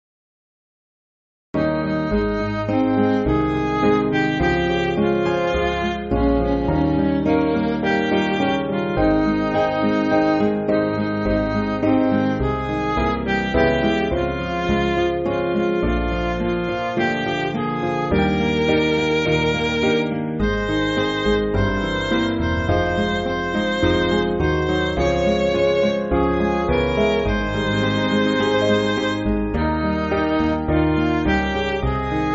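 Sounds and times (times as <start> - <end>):
MIDI backing music for churches: 1.6 - 32.3.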